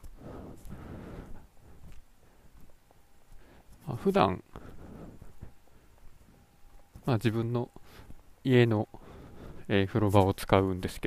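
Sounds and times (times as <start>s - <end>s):
footsteps of someone walking through the neighborhood: 0.0s - 9.4s
steady hiss: 0.0s - 11.0s
speech: 3.9s - 4.5s, 7.1s - 7.8s, 8.4s - 9.0s, 9.7s - 11.0s.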